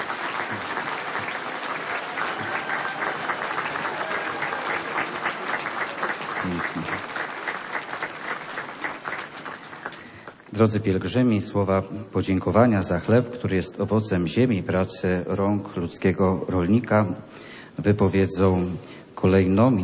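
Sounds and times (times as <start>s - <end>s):
audience applause: 0.0s - 10.5s
speech: 10.6s - 19.8s.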